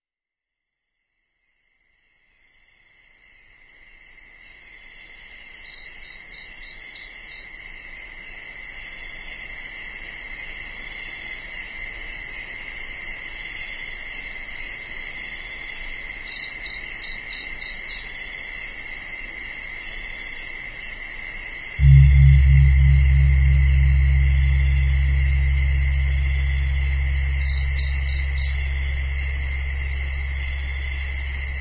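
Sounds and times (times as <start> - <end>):
gongs ringing: 21.8 - 31.5.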